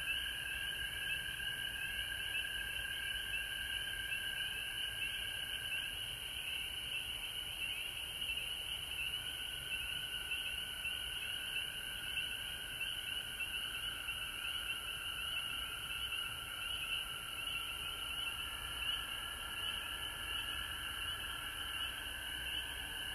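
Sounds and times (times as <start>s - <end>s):
frog chorus trilling: 0.0s - 23.1s.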